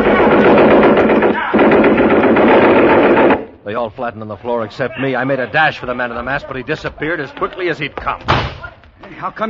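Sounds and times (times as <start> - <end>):
Thompson submachine gun firing blanks: 0.0 - 3.6
speech: 4.0 - 9.4.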